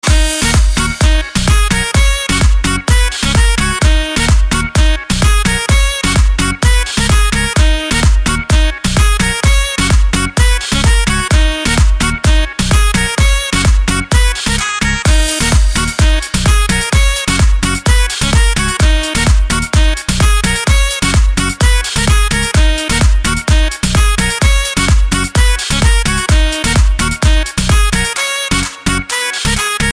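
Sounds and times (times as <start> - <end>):
saxophone remix: 0.0 - 29.9.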